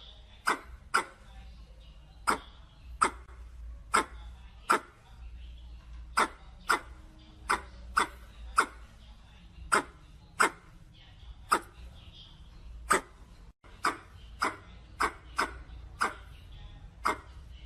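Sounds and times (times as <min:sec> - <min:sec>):
red squirrel chuck calls: 0:02.2 - 0:03.3, 0:06.2 - 0:08.9, 0:09.7 - 0:10.6, 0:13.7 - 0:16.3, 0:17.0 - 0:17.3.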